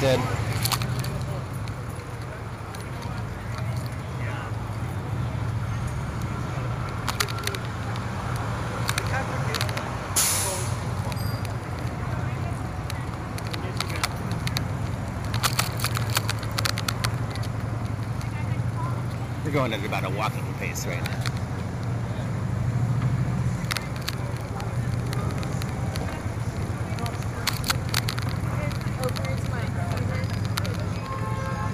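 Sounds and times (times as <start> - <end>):
speech: 0.0 - 0.4, 19.6 - 21.3
police motorcycles idling and moving: 0.0 - 31.5
clicks and rattles: 0.4 - 4.0, 6.9 - 9.9, 11.0 - 18.5, 23.5 - 31.3
brief hiss: 10.2 - 10.8.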